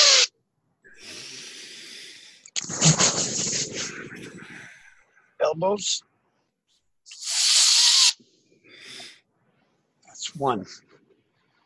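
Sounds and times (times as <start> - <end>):
deep breathing in through mouth and nose during an arm-lifting exercise: 0.9 - 2.6, 3.6 - 5.4, 7.2 - 9.9
speech: 5.5 - 6.1, 10.4 - 10.9.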